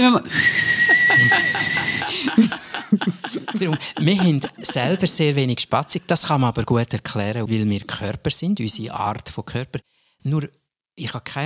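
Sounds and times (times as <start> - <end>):
voice imitating a pressure cooker whistle: 0.3 - 2.1
person chuckling: 0.8 - 5.1
speech: 3.6 - 11.4.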